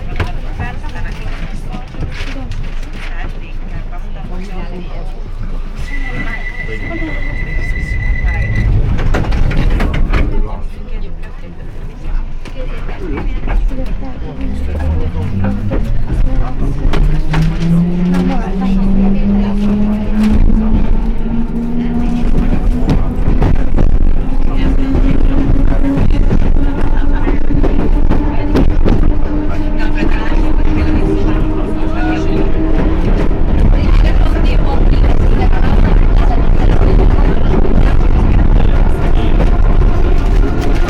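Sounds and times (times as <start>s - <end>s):
London Underground train: 0.0s - 40.8s.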